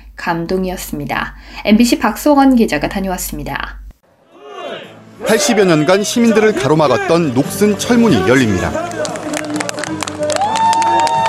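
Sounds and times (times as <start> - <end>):
speech: 0.2 - 3.8, 5.3 - 9.2
crowd cheering: 4.1 - 11.2
hands clapping: 8.7 - 11.2
person shouting or whooping: 8.8 - 11.2.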